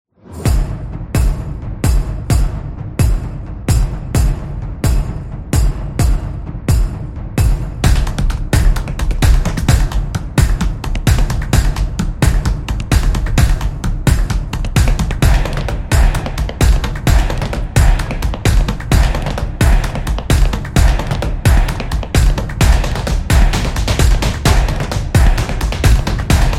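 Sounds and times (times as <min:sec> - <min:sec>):
tribal dance music: 0:00.3 - 0:26.5.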